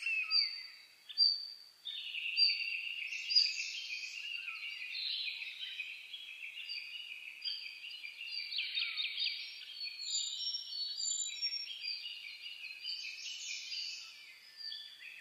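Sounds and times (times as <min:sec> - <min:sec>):
birds singing in dawn chorus: 0:00.0 - 0:15.1.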